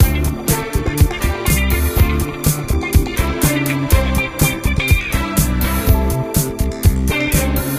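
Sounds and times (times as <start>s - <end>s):
disco music: 0.0s - 7.7s.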